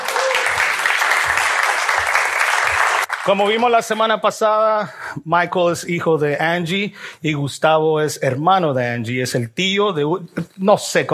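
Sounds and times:
audience applause: 0.0s - 4.0s
speech: 3.2s - 11.1s.

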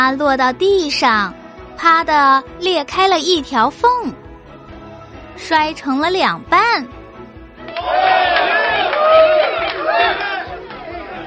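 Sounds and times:
speech: 0.0s - 4.2s, 5.4s - 7.0s
crowd applause: 7.6s - 11.2s.

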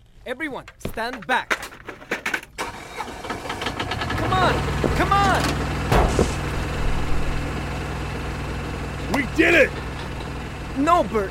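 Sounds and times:
speech: 0.2s - 1.6s, 4.3s - 6.3s, 9.1s - 9.8s, 10.8s - 11.2s
generator engine running with a low mechanical hum: 2.6s - 11.2s.

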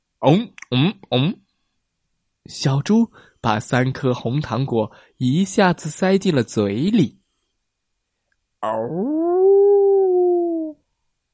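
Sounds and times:
speech: 0.2s - 1.4s, 2.5s - 7.2s, 8.6s - 9.2s
big grey wolf howling: 8.7s - 10.8s.

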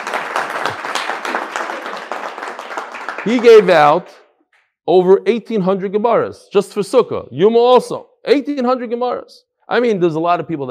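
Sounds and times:
crowd applause: 0.0s - 4.2s
speech: 3.2s - 4.2s, 4.8s - 10.6s.

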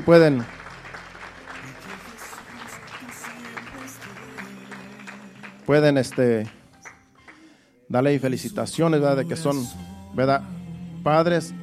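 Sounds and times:
speech: 0.0s - 0.6s, 5.7s - 6.6s, 7.9s - 11.6s
crowd clapping: 0.0s - 7.6s.

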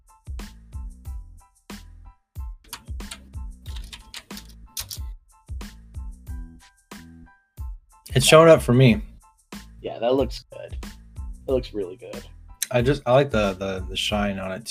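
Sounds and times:
typing a private message on a computer keyboard: 2.7s - 5.0s
speech: 8.2s - 9.1s, 10.0s - 10.6s, 11.5s - 14.7s.

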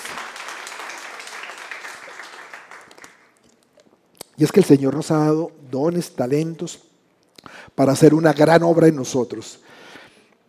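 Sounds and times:
loud audience applause: 0.0s - 3.3s
speech: 4.4s - 6.9s, 7.8s - 9.8s.

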